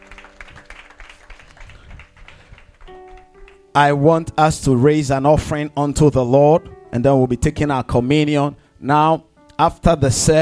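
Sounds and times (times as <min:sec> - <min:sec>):
congregation clapping during a church service: 0:00.0 - 0:03.8
speech: 0:03.8 - 0:10.4.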